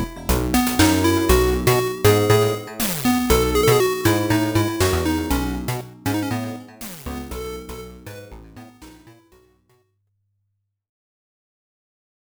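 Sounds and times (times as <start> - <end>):
8-bit music: 0.0 - 9.6.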